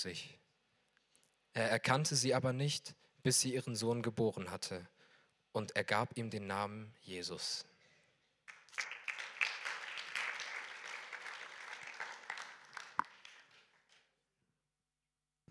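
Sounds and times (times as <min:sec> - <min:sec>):
speech: 0:00.0 - 0:00.4, 0:01.6 - 0:07.7
weak applause from audience: 0:08.5 - 0:14.0.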